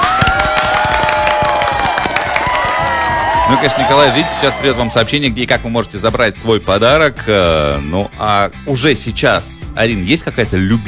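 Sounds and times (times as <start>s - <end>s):
applause: 0.0s - 4.6s
speech: 3.5s - 10.8s.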